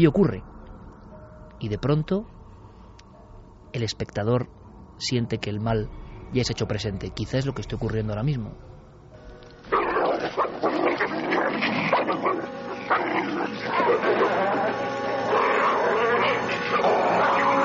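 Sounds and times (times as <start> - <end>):
speech: 0.0 - 0.5, 1.6 - 2.4, 3.7 - 8.7
two dogs fighting: 9.7 - 17.6.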